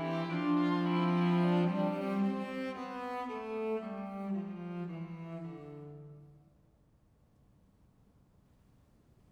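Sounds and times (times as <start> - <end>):
string quartet: 0.0 - 6.2.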